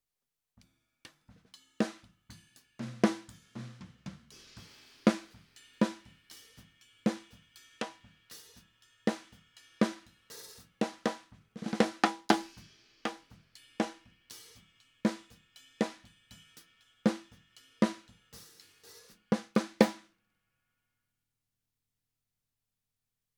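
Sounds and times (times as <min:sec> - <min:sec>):
snare drum: 0:02.8 - 0:16.0, 0:17.1 - 0:20.0.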